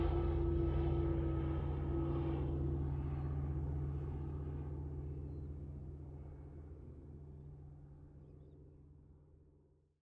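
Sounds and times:
CA-13 Boomerang airplane flying a loop: 0.0 - 9.5.

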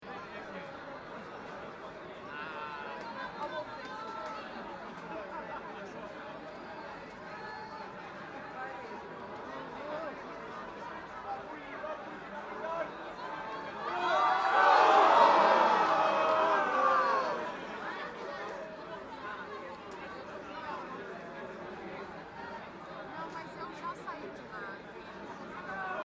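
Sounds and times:
small football crowd reacting in London, England: 12.8 - 19.1.

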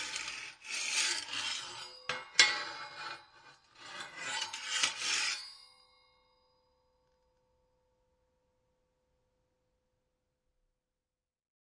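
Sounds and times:
metal rake scraping on concrete: 0.0 - 3.2, 3.8 - 5.5.

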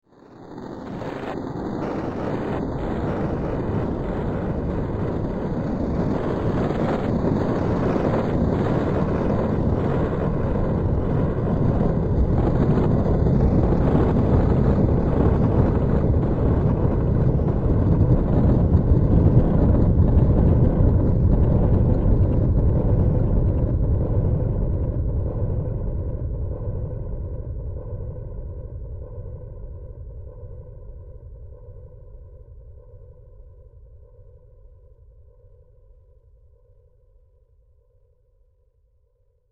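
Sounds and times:
epic fantasy storm rumbles: 0.3 - 31.9.

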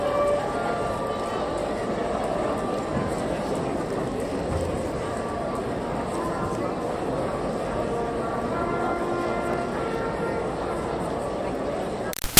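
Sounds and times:
high school graduation crowd chatter in an auditorium: 0.0 - 12.2.

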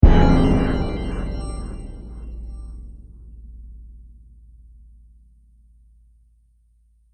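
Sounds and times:
sci-fi trailer hit: 0.0 - 3.3.

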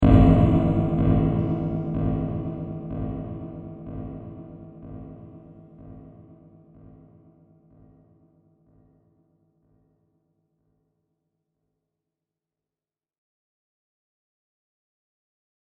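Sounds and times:
reverberating thud impact: 0.0 - 5.9.

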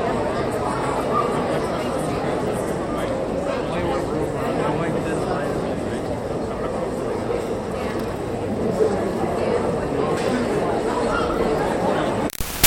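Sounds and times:
high school graduation crowd idle chatter in an auditorium: 0.0 - 12.3.

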